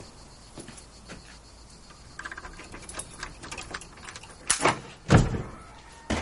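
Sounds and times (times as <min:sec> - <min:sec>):
key rattling in a door lock: 0:02.1 - 0:04.8
door thudding and creaking open: 0:02.2 - 0:06.2.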